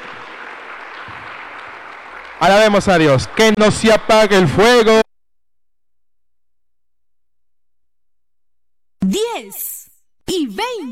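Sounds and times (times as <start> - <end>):
audience applauding: 0.0 - 5.0
speech: 2.4 - 5.0, 9.4 - 9.7, 10.6 - 10.9.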